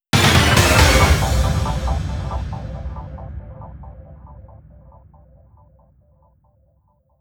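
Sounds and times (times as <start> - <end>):
breaking news logo music stabs: 0.1 - 5.6.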